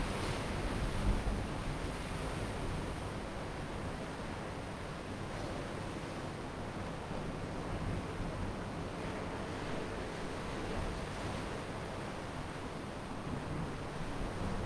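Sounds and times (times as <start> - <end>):
ocean waves at night in Kauai: 0.0 - 14.6.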